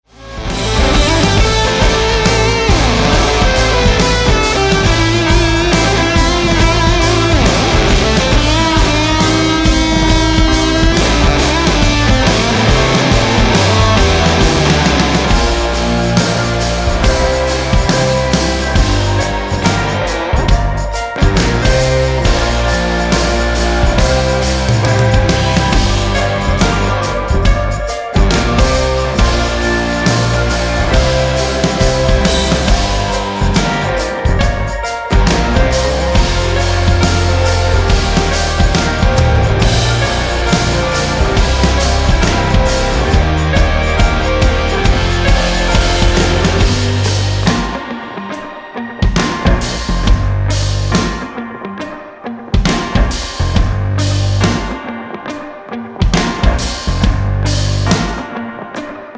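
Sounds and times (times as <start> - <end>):
instrumental music: 0.0 - 59.1.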